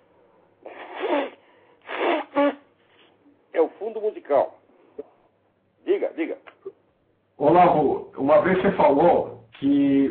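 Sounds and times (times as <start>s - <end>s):
person blowing nose: 0.6s - 3.2s
speech: 3.8s - 5.1s, 5.9s - 6.8s, 7.4s - 10.0s.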